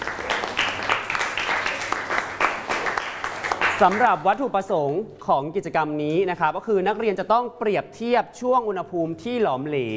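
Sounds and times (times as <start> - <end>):
classroom students applauding: 0.0 - 4.4
speech: 3.8 - 9.9.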